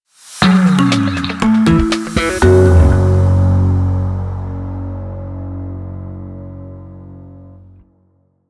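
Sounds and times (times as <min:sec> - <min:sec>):
logo jingle music bed bumper: 0:00.4 - 0:03.4.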